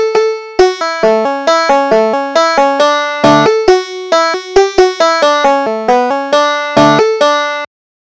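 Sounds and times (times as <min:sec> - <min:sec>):
banjo: 0:00.0 - 0:07.7.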